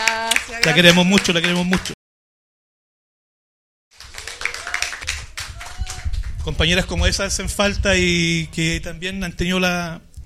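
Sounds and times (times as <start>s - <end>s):
clapping applause: 0.0s - 2.0s, 3.9s - 6.9s
speech: 0.6s - 2.0s, 6.4s - 10.1s.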